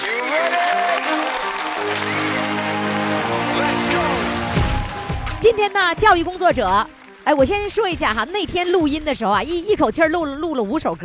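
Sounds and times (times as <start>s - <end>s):
audience applause: 0.0s - 8.2s
speech: 5.4s - 11.0s.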